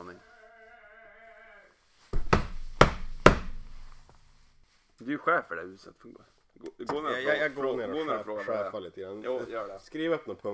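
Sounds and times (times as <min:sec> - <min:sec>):
knocking on a door: 0:02.1 - 0:03.8
speech: 0:05.0 - 0:10.5.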